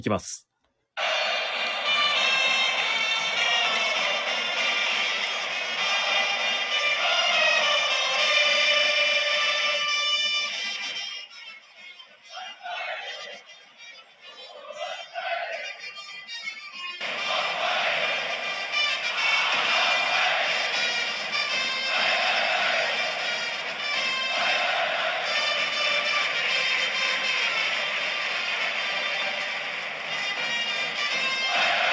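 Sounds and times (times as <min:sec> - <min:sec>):
speech: 0:00.0 - 0:00.5
Orix baseball fans chanting a cheer: 0:01.0 - 0:09.4, 0:12.3 - 0:13.5, 0:14.3 - 0:15.8, 0:17.0 - 0:31.9
trumpets playing: 0:01.1 - 0:11.1, 0:17.0 - 0:31.9.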